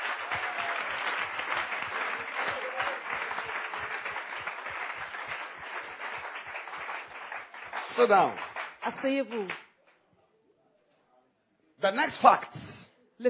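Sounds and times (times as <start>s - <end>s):
congregation clapping for Jesus during a church service: 0.0s - 10.0s
speech: 8.0s - 9.6s, 11.8s - 12.6s.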